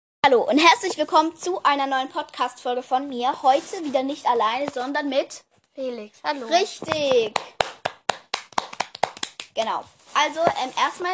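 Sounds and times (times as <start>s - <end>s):
speech: 0.3s - 7.7s, 9.6s - 11.1s
one person clapping: 6.9s - 9.7s.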